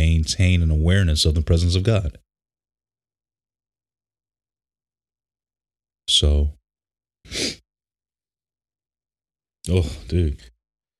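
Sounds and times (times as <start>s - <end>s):
speech: 0.2s - 2.2s, 6.1s - 6.6s, 7.2s - 7.6s, 9.6s - 10.5s
person sniffling: 7.3s - 7.6s.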